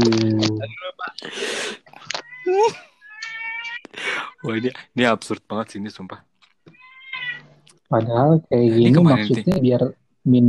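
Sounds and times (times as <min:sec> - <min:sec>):
cats yowling while mating: 0:02.1 - 0:04.7, 0:06.7 - 0:07.5
speech: 0:04.5 - 0:06.3, 0:07.9 - 0:10.4.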